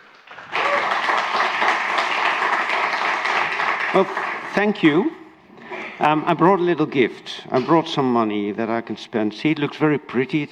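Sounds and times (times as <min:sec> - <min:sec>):
audience applause: 0:00.0 - 0:05.1
speech: 0:03.9 - 0:05.2, 0:06.0 - 0:10.5.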